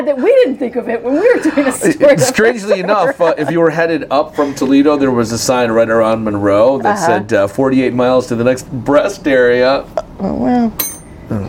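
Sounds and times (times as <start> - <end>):
speech: 0.0 - 11.4
laughter: 1.1 - 5.1
bell being slammed: 10.8 - 11.2
person groaning: 11.3 - 11.4.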